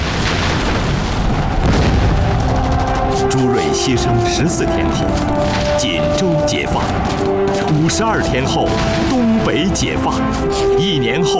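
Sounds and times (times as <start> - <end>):
artillery shells exploding: 0.0 - 10.6
speech: 3.4 - 11.3.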